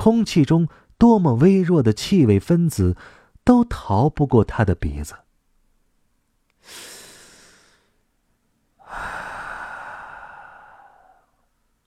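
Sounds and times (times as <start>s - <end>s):
speech: 0.0s - 5.2s
deep breathing: 3.0s - 3.4s, 6.6s - 8.0s, 8.8s - 11.6s.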